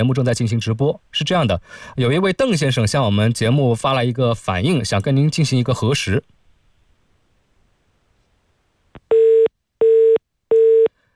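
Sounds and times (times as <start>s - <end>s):
speech: 0.0s - 6.3s
telephone busy tone after a hang-up: 9.1s - 11.1s.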